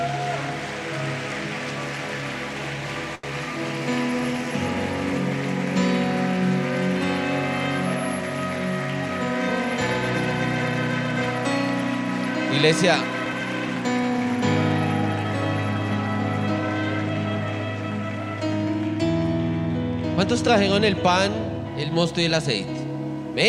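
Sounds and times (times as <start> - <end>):
audience applause: 0.0 - 19.0
sustained low musical tones: 0.0 - 23.4
speech: 12.6 - 13.1, 20.3 - 22.8.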